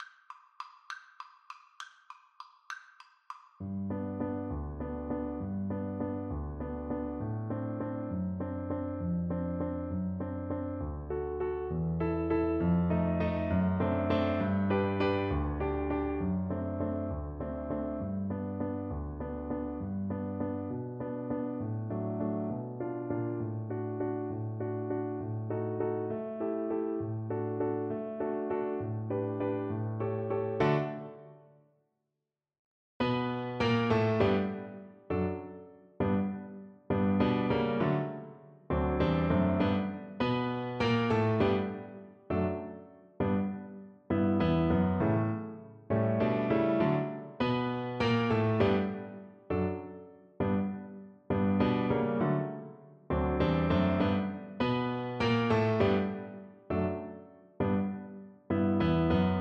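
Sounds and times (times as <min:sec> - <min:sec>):
piano duet: 0:03.6 - 0:31.6, 0:33.0 - 0:59.3.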